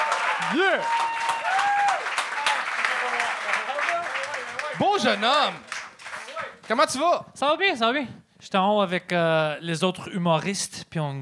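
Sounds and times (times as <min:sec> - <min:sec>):
crowd cheering and whooping: 0:00.0 - 0:05.4
crowd applause: 0:00.0 - 0:06.8
speech: 0:00.5 - 0:01.1, 0:04.8 - 0:05.7, 0:06.7 - 0:11.1.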